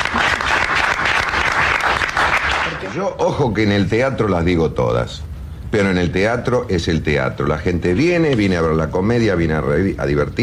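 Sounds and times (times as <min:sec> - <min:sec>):
audience applause in a theatre for comedians: 0:00.0 - 0:03.0
speech: 0:03.0 - 0:10.4.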